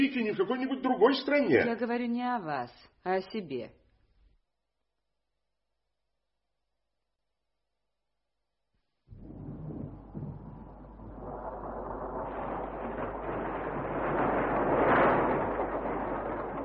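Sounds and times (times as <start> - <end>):
speech: 0.0 - 3.8
storm thunder rumbling: 9.1 - 16.6.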